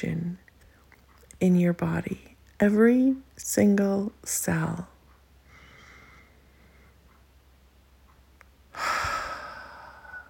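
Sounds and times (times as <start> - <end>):
speech: 0.0 - 0.4, 1.4 - 4.9
deep breath during a guided relaxation exercise: 5.4 - 7.0, 8.7 - 10.2.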